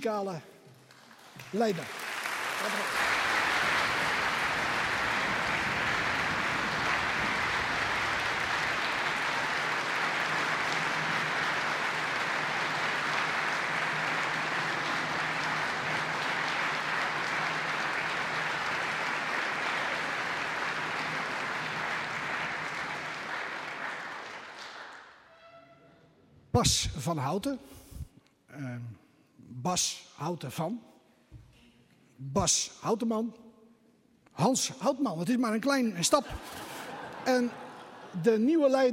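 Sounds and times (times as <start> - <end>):
speech: 0.0 - 0.5, 1.4 - 2.0, 2.6 - 3.2, 26.6 - 27.8, 29.6 - 30.9, 32.3 - 33.4, 34.4 - 36.6, 37.2 - 37.6, 38.2 - 38.9
audience applause: 0.8 - 25.2, 36.3 - 38.2
laughter: 36.2 - 38.9.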